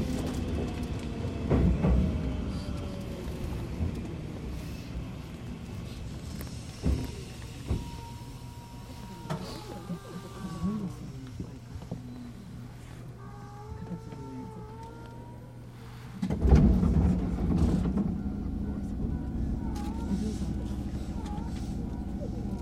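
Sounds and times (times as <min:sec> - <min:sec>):
Tsurumi Line train rumble: 0:00.0 - 0:22.6
knocks and clatters: 0:16.2 - 0:18.3.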